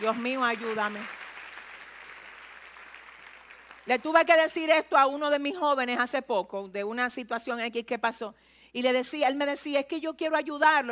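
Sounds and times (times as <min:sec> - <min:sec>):
speech: 0:00.0 - 0:01.2, 0:03.9 - 0:10.8
audience applause: 0:00.0 - 0:03.9.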